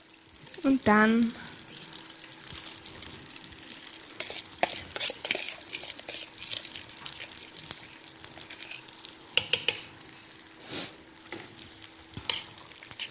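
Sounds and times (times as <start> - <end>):
faint sizzling: 0.0 - 13.1
speech: 0.6 - 1.4
spoon stirring pasta and cheese mixture in a pot: 4.1 - 9.9, 12.1 - 13.1.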